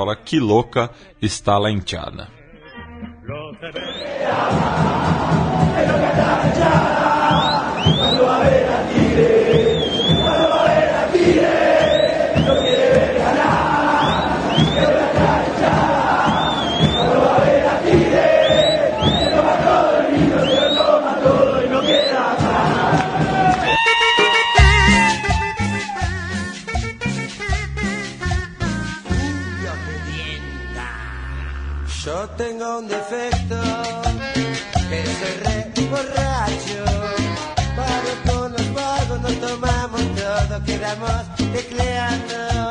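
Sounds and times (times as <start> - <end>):
speech: 0.0 - 2.4, 3.6 - 5.1
pounding rhythmic beat: 3.0 - 30.8, 32.9 - 42.7
large football crowd chanting in unison: 3.7 - 23.8
shrill whistles: 3.8 - 4.5, 7.2 - 8.4, 9.5 - 13.0, 13.9 - 15.1, 16.1 - 17.4, 18.2 - 19.6, 20.3 - 22.4, 23.6 - 26.3.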